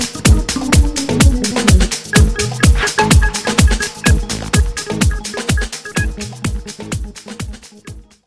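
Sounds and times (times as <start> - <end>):
punchy bass organ: 0.0 - 8.1.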